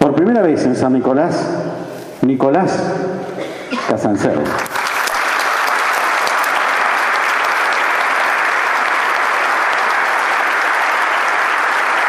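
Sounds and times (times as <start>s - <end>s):
speech: 0.2s - 4.8s
audience applause: 4.4s - 12.0s.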